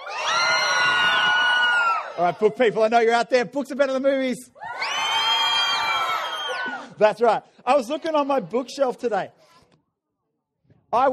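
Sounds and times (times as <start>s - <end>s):
children cheering: 0.0s - 2.2s, 4.6s - 6.8s
speech: 2.2s - 4.7s, 7.0s - 9.4s, 10.9s - 11.1s.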